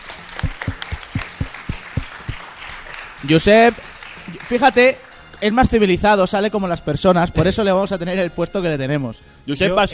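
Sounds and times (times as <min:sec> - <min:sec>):
applause: 0:00.0 - 0:05.8
speech: 0:03.2 - 0:03.9, 0:04.5 - 0:09.9.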